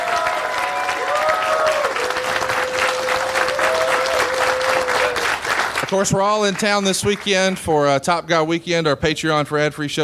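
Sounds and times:
audience applause: 0.0 - 7.6
speech: 5.9 - 10.0.

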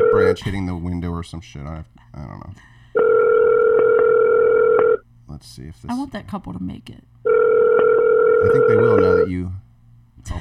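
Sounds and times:
phone line tone on an outgoing call: 0.0 - 0.4, 3.0 - 5.0, 7.3 - 9.3
speech: 0.2 - 2.8, 5.3 - 7.1, 8.4 - 9.6, 10.2 - 10.3.

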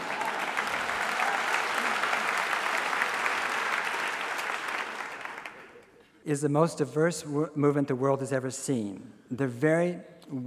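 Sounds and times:
talk audience applause: 0.0 - 5.9
speech: 6.3 - 10.4.

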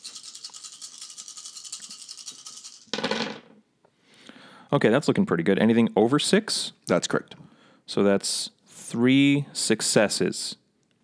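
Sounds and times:
handful of dice rattling and rolling: 0.0 - 3.5
speech: 4.7 - 10.6.

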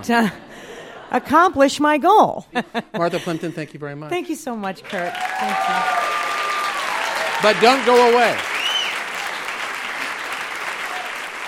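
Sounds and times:
speech: 0.0 - 0.5, 1.1 - 6.1, 7.4 - 8.5
audience applause: 4.8 - 11.4.

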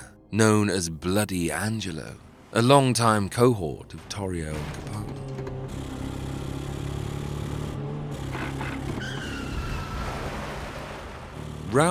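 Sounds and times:
speech: 0.3 - 5.0
cars in a high-speed car chase: 4.5 - 11.8.

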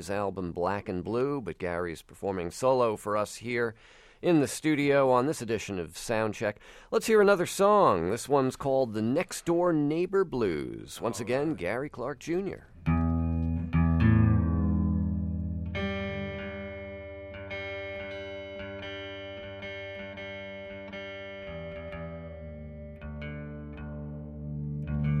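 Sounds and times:
speech: 0.0 - 13.0
guitar being retuned to open G: 12.6 - 25.1.

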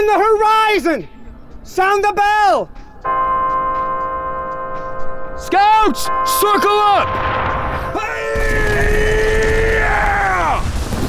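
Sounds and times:
speech: 0.1 - 3.5, 5.4 - 7.4
low rumbling: 7.0 - 9.8
incoming rockets whining: 7.0 - 11.0.

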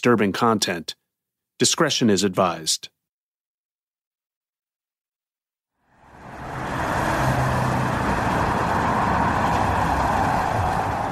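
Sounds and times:
speech: 0.0 - 1.0, 1.6 - 2.9
street traffic at the corner of Wilcox and De Longpre in Hollywood: 5.9 - 11.1.

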